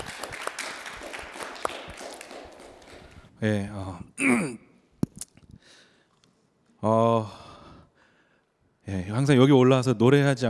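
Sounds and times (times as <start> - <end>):
audience applause: 0.0 - 3.2
speech: 3.4 - 4.6, 9.2 - 10.4.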